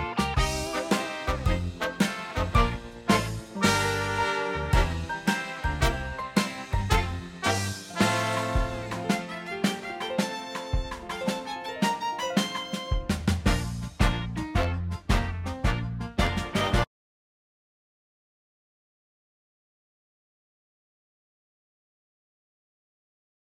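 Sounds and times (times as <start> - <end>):
backing music: 0.0 - 16.9.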